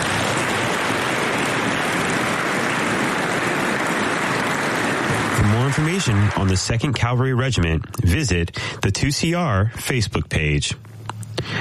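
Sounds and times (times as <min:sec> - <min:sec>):
audience applause: 0:00.0 - 0:08.4
speech: 0:05.7 - 0:11.5.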